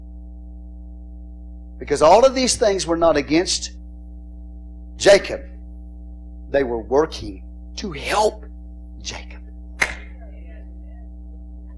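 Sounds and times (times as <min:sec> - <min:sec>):
steady low hum: 0:00.0 - 0:11.7
speech: 0:01.8 - 0:03.8, 0:05.0 - 0:05.5, 0:06.5 - 0:08.4, 0:09.0 - 0:09.3
hand clap: 0:09.8 - 0:10.1.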